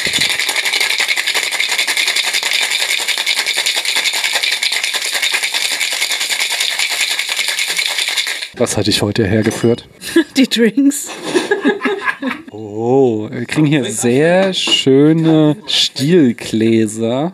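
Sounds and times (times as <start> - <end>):
ice rattling in a metal cocktail shaker being shaken: 0.0 - 8.6
speech: 8.6 - 11.0, 11.6 - 17.3
laughter: 11.1 - 12.5.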